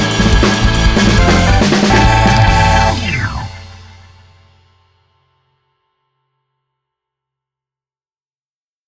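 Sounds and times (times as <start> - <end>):
rock music: 0.0 - 4.7.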